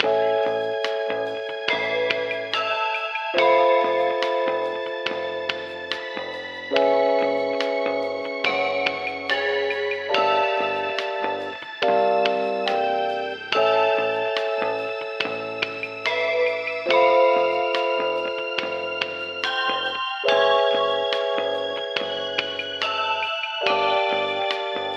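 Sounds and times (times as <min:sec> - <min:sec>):
elevator music: 0:00.0 - 0:24.9.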